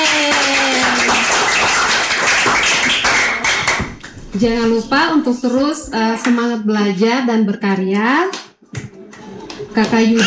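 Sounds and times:
crowd applause: 0.0 - 4.1
speech: 4.4 - 8.4, 9.8 - 10.2.

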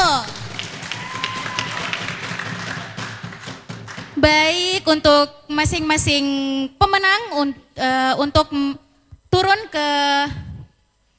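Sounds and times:
crowd applauding: 0.0 - 4.5
speech: 4.2 - 8.8, 9.4 - 10.4.

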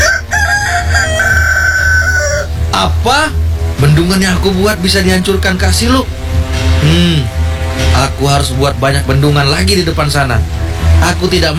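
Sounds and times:
rooster crowing: 0.0 - 2.6
speech: 2.8 - 6.2, 6.9 - 11.5.

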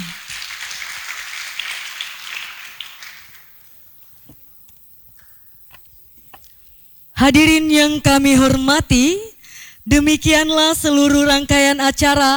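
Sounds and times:
audience applause: 0.0 - 3.8
speech: 7.2 - 12.3.

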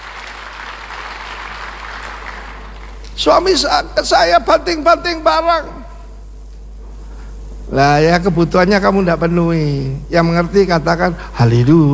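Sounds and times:
audience applause: 0.0 - 3.8
speech: 3.2 - 5.8, 7.8 - 11.9.

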